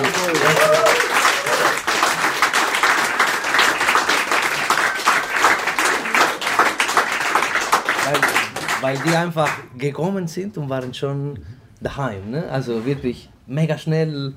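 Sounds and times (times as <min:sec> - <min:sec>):
audience applause: 0:00.0 - 0:09.7
speech: 0:08.9 - 0:14.3.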